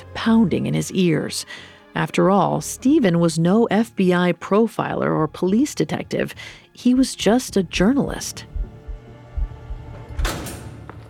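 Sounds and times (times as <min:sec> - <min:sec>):
speech: 0:00.2 - 0:08.5
steady low hum: 0:07.2 - 0:11.0
heavy secure prison door swinging open: 0:09.9 - 0:11.0.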